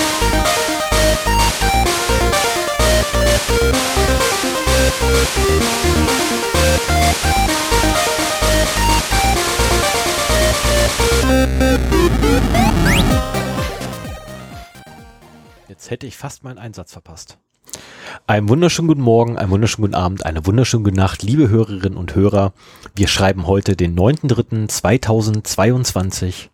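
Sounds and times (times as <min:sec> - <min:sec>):
swirling warbling sweep: 0:00.0 - 0:14.4
loud intro music with pulsing beat: 0:00.0 - 0:15.7
speech: 0:15.9 - 0:26.5.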